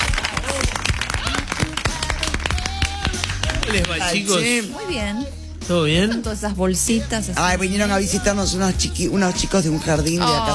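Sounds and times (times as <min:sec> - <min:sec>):
audience applause: 0:00.0 - 0:04.0
speech: 0:03.7 - 0:10.5.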